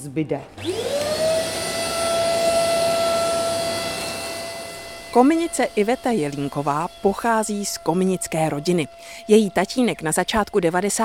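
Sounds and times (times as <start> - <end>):
speech: 0.0 - 0.9, 5.2 - 11.0
vacuum cleaner sucking up chimney soot: 0.4 - 11.0.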